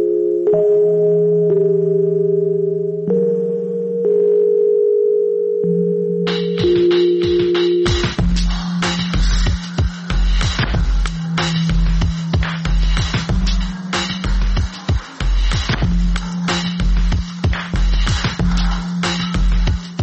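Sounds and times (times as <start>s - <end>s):
soft mellow Rhodes electric piano chords: 0.0s - 8.2s
heavy steady drum beat with crisp hissy percussion: 6.5s - 20.0s.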